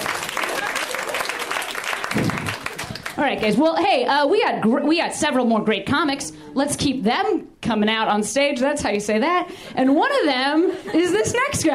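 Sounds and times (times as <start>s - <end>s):
audience applause: 0.0s - 3.2s
speech: 3.2s - 11.7s.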